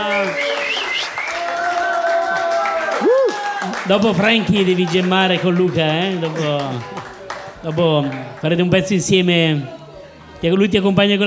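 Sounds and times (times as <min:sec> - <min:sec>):
sustained whistle: 0:00.0 - 0:01.4
shouts and whoops: 0:00.0 - 0:03.8
audience clapping: 0:00.0 - 0:08.8
speech: 0:03.6 - 0:09.8, 0:10.4 - 0:11.2.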